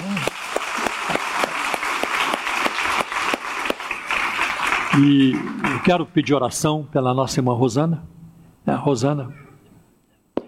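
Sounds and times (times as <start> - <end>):
audience applauding: 0.0 - 6.1
speech: 5.0 - 9.4.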